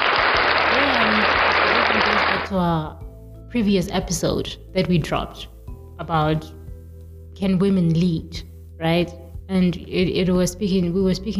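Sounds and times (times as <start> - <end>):
applause: 0.0 - 2.5
speech: 2.5 - 6.6, 7.4 - 11.3.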